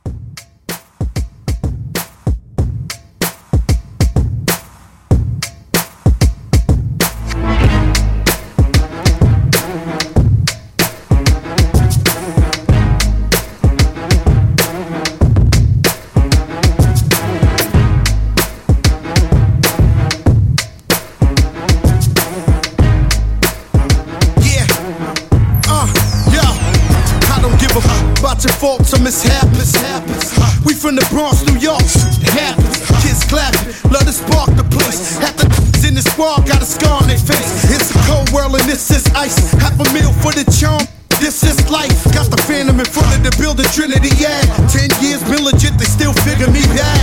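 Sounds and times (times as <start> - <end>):
throwback drum loop: 0.0 - 47.0.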